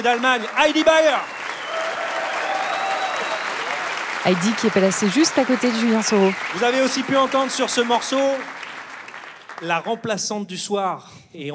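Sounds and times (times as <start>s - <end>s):
speech: 0.0s - 1.4s, 4.2s - 8.6s, 9.6s - 11.5s
audience applause: 0.0s - 10.0s.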